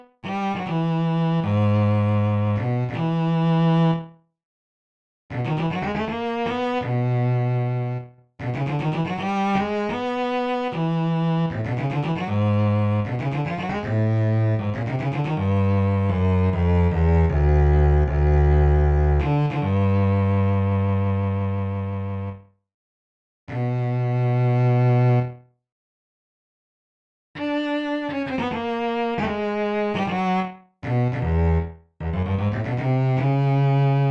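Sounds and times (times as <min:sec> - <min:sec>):
bass: 0:00.2 - 0:04.2, 0:05.3 - 0:22.5, 0:23.5 - 0:25.4, 0:27.4 - 0:34.0.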